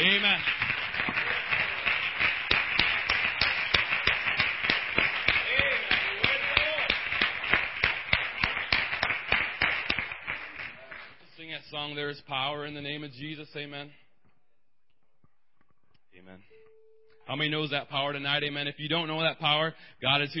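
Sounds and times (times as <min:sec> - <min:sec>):
audience applause: 0:00.0 - 0:11.2
speech: 0:12.1 - 0:14.0, 0:17.3 - 0:20.3.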